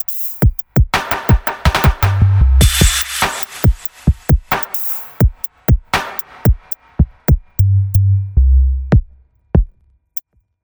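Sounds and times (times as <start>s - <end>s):
drums: 0.0s - 7.7s, 9.0s - 9.7s.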